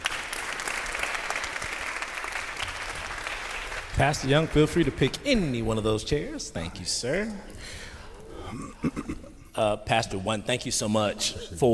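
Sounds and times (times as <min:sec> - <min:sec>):
audience clapping hands: 0:00.0 - 0:06.0
speech: 0:04.0 - 0:07.9, 0:08.5 - 0:11.7.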